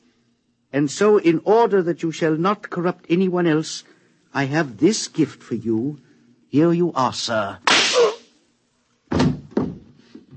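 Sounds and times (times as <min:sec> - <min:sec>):
speech: 0:00.8 - 0:07.7
radio drama gunshot sound effects: 0:07.7 - 0:08.2.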